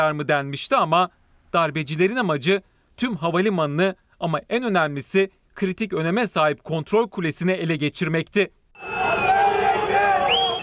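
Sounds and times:
speech: 0:00.0 - 0:08.9
crowd shouting during an armed coup: 0:08.8 - 0:10.6.

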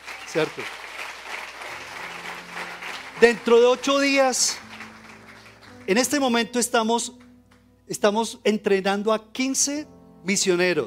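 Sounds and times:
audience clapping: 0:00.0 - 0:07.7
speech: 0:00.3 - 0:00.8, 0:03.2 - 0:04.7, 0:05.8 - 0:07.2, 0:07.9 - 0:10.8.

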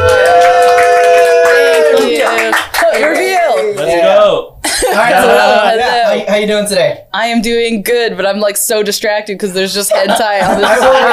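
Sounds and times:
high voices whooping and cheering: 0:00.0 - 0:02.5
audience applause: 0:00.0 - 0:04.0
laughter: 0:04.6 - 0:06.2, 0:09.9 - 0:11.1
speech: 0:06.4 - 0:11.1.

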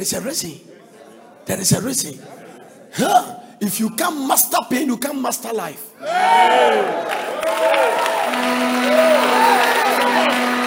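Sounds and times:
speech: 0:00.0 - 0:00.8, 0:01.5 - 0:07.2
audience cheering loudly with many voices whooping: 0:06.0 - 0:10.6
scattered clapping: 0:07.1 - 0:10.6.

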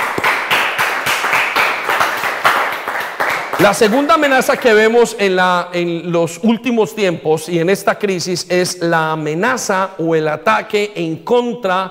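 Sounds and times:
audience applause: 0:00.0 - 0:04.4
speech: 0:03.6 - 0:11.8.

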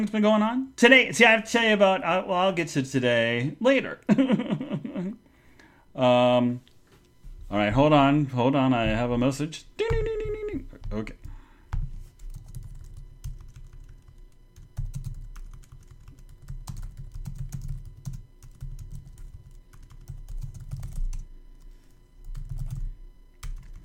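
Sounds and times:
speech: 0:00.0 - 0:05.2, 0:06.0 - 0:06.7, 0:07.5 - 0:10.0, 0:10.9 - 0:11.2
typing on a computer keyboard: 0:12.2 - 0:21.2, 0:22.3 - 0:22.8.

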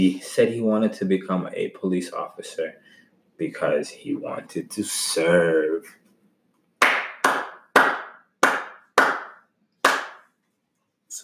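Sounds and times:
speech: 0:00.0 - 0:06.0
single hand clap: 0:06.8 - 0:10.3.

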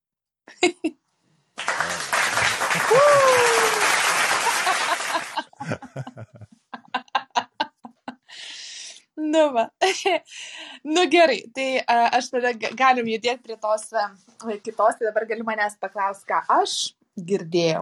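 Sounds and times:
speech: 0:00.5 - 0:01.0, 0:09.3 - 0:17.7
canned applause sound effect triggered by a button in a live audio chat room: 0:01.6 - 0:05.4
laughter: 0:01.6 - 0:08.2.

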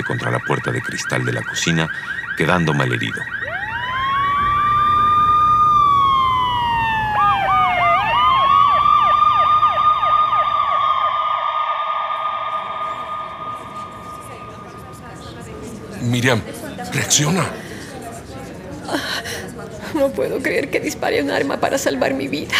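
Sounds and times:
speech: 0:00.0 - 0:03.4, 0:16.2 - 0:17.6, 0:18.9 - 0:19.4, 0:20.0 - 0:22.5
pickup truck alarm going off: 0:00.0 - 0:15.5.

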